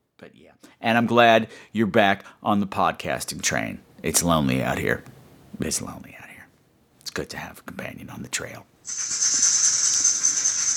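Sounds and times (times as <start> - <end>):
speech: 0.2 - 6.2, 7.2 - 9.8
rattlesnake rattle: 8.8 - 10.7
phone ringtone: 8.9 - 10.7.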